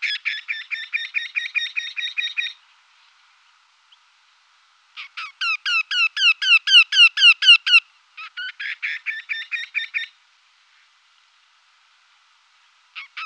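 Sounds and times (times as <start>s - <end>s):
woodpecker song: 0.0s - 2.6s, 5.0s - 10.2s.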